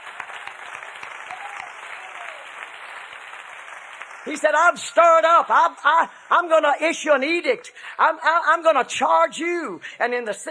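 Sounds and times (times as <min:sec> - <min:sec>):
audience clapping hands: 0:00.0 - 0:05.5
speech: 0:04.2 - 0:10.4.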